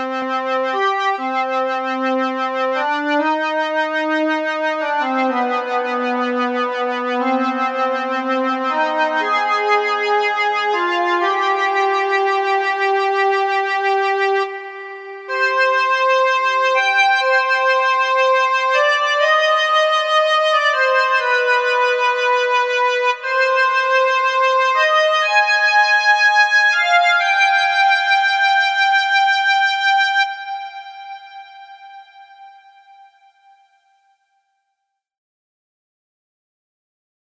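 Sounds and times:
Roland Fantom Jupiter-8 model synthesizer: 0:00.2 - 0:33.8.

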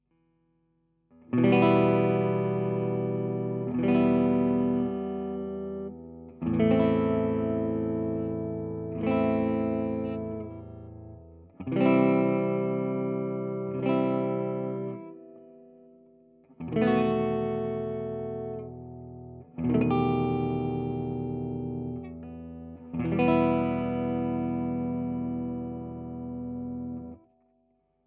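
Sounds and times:
Les Paul electric guitar through Presonus64S: 0:01.1 - 0:27.4.

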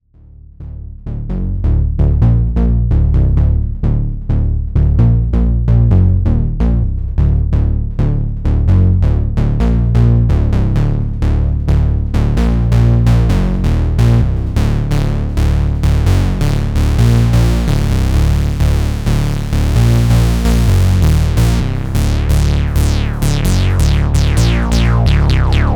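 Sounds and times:
fat bass: 0:00.0 - 0:25.7.

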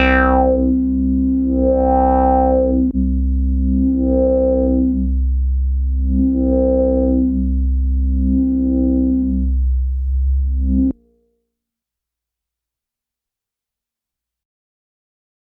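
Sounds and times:
square PWM distorted synth bass with LFO and low-pass filter: 0:00.0 - 0:11.1.

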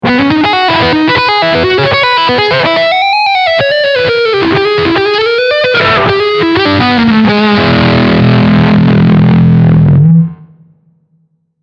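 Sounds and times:
distorted electric guitar lick on front humbucker: 0:00.0 - 0:10.9.

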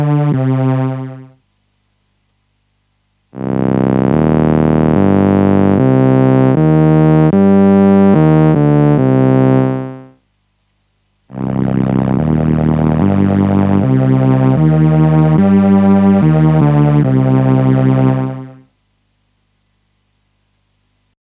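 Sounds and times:
Behringer Solina synthesizer bass and cello mix: 0:00.0 - 0:01.4, 0:03.4 - 0:10.1, 0:11.4 - 0:18.7.

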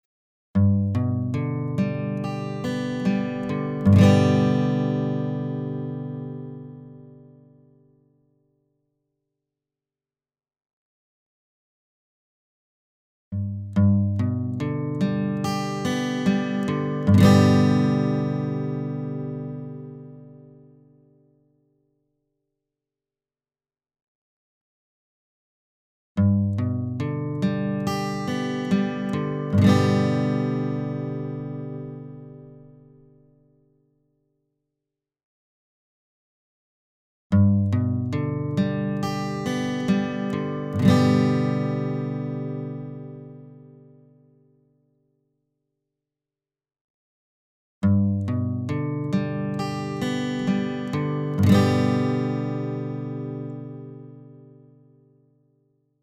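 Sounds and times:
guitar: 0:00.6 - 0:08.6, 0:13.4 - 0:21.8, 0:26.2 - 0:33.9, 0:37.3 - 0:45.0, 0:47.8 - 0:55.6.

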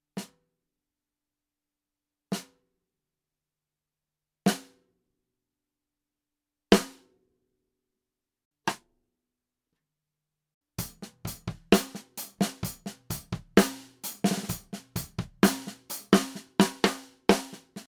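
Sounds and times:
TAMA LAL145 drum: 0:10.8 - 0:17.8.

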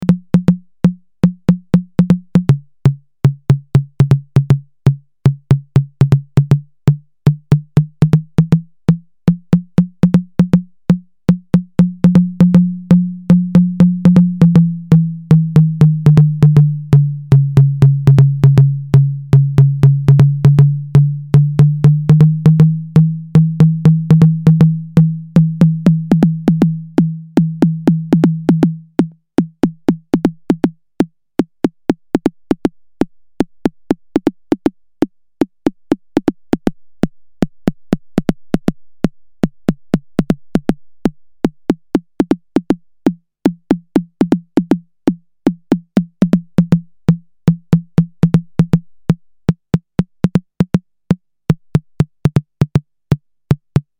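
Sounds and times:
conga drum: 0:00.0 - 0:53.9.

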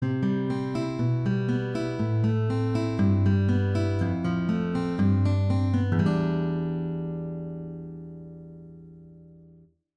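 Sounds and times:
acoustic music: 0:00.0 - 0:09.6.

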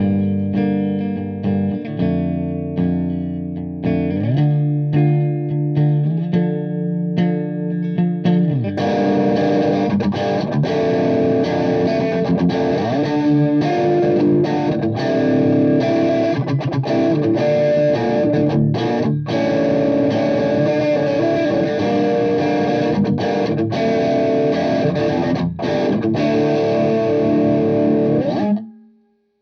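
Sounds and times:
high-gain distortion pedal guitar: 0:00.0 - 0:28.9.

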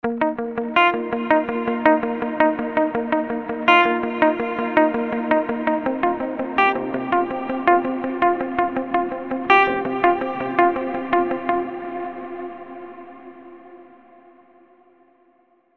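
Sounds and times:
funk guitar wobble: 0:00.0 - 0:12.2.

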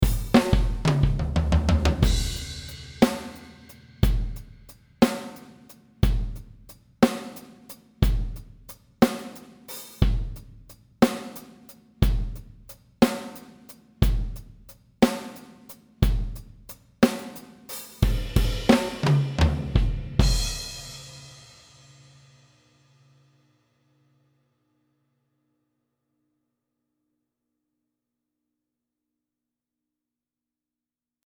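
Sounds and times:
big funk drum kit: 0:00.0 - 0:21.8.

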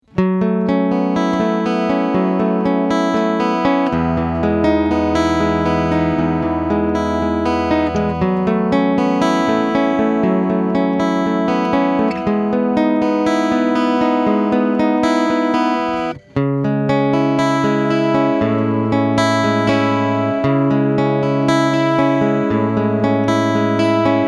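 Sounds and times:
PRS Hollowbody II guitar picking through piezo pickup: 0:00.0 - 0:24.2.

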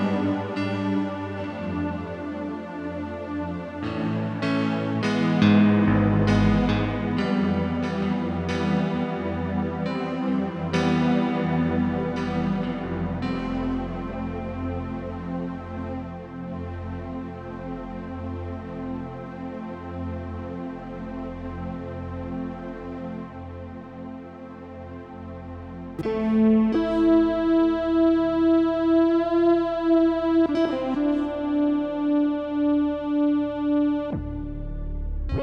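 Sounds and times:
Yamaha CP70 electric grand piano: 0:00.0 - 0:18.4, 0:26.0 - 0:34.8.

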